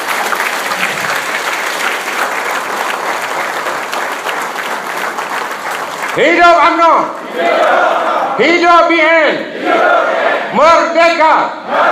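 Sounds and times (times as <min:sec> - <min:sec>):
thunderous applause, standing ovation: 0:00.0 - 0:07.2
speech: 0:06.2 - 0:11.9.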